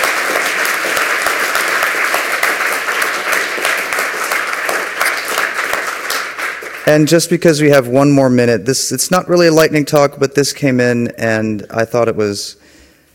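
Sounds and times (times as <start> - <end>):
audience applause: 0.0 - 7.1
speech: 6.9 - 12.7.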